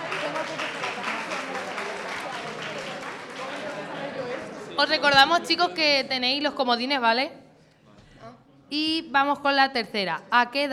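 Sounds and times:
audience applause: 0.0s - 4.8s
speech: 4.8s - 7.4s, 8.7s - 10.7s.

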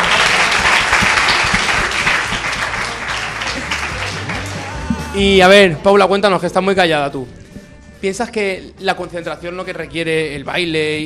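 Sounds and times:
audience applause: 0.0s - 5.3s
speech: 5.2s - 7.4s, 8.0s - 11.0s.

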